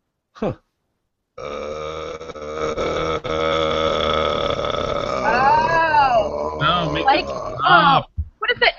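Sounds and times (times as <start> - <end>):
speech: 0.4 - 0.6, 1.4 - 1.7, 7.1 - 8.1
sliding vocal sound: 1.4 - 8.0.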